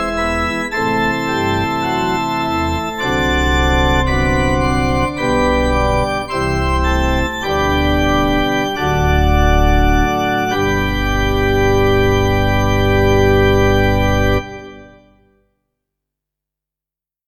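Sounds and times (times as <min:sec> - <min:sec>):
pipe organ: 0:00.0 - 0:15.2.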